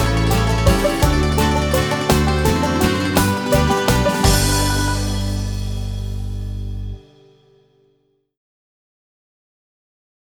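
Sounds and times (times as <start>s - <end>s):
flute playing: 0.0s - 6.7s.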